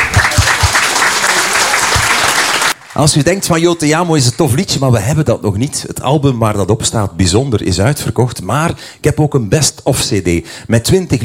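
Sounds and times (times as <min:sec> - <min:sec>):
audience applause: 0:00.0 - 0:04.1
speech: 0:03.0 - 0:11.2.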